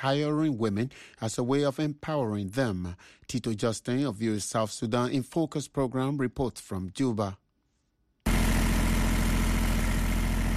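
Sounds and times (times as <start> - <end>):
speech: 0.0 - 7.4
soap-making machine at Junubi Soap Company in Juba running: 8.3 - 10.5.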